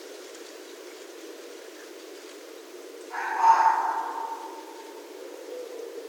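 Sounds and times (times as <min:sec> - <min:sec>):
red fox calling: 0:03.1 - 0:06.0.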